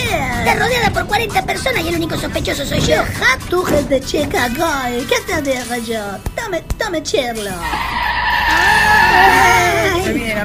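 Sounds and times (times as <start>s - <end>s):
speech: 0.5s - 10.4s
car skidding with brakes screeching, played as a sound effect: 7.6s - 10.0s.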